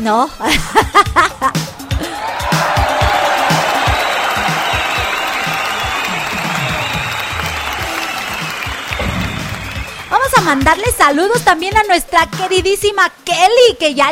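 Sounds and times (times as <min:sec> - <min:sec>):
speech: 0:00.0 - 0:01.2, 0:10.5 - 0:14.1
laughter: 0:00.4 - 0:04.8
audience applause: 0:01.8 - 0:10.8.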